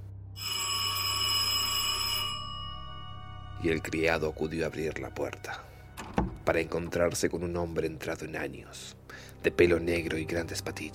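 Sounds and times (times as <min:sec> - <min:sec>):
Dobson mansion door bell ringing: 0:00.4 - 0:03.9
speech: 0:03.6 - 0:05.7, 0:06.4 - 0:10.9.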